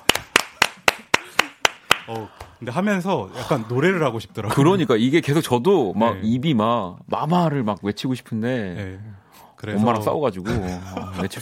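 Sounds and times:
sharp hand claps: 0.0s - 2.6s
speech: 2.1s - 11.4s.

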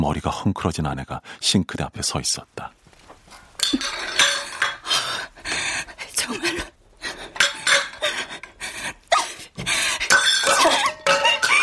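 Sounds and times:
speech: 0.0s - 2.8s
dishes clattering in the kitchen: 3.6s - 5.2s, 7.2s - 8.6s, 9.6s - 11.6s.

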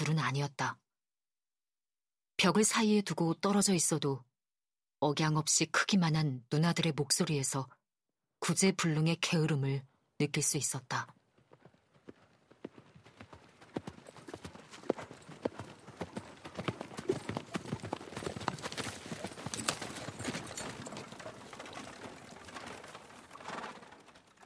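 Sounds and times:
speech: 0.2s - 0.8s, 2.4s - 4.3s, 5.0s - 7.8s, 8.4s - 11.2s
horse hooves: 11.2s - 24.4s.

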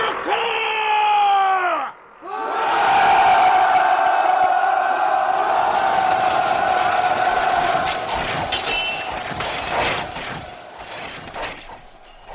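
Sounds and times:
mass of soldiers bellowing a battle cry as they charge: 0.0s - 12.1s
clatter: 6.0s - 12.3s.

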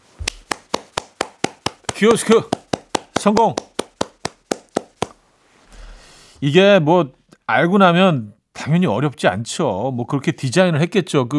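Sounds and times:
single pair of hands clapping: 0.2s - 5.2s
speech: 2.0s - 2.6s, 3.2s - 3.6s, 6.4s - 11.3s.

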